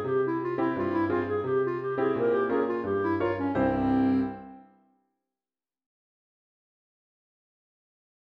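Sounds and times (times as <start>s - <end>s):
Galician folk dance music with clarinet: 0.0s - 4.8s.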